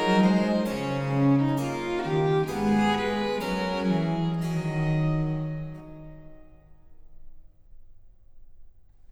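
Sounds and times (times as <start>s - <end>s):
harpsichord solo canon: 0.0s - 6.4s.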